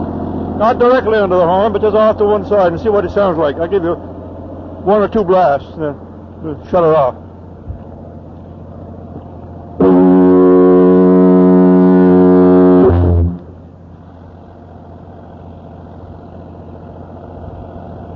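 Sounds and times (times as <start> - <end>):
diesel engines: 0.0 - 18.1
diaphone horn: 9.8 - 13.5.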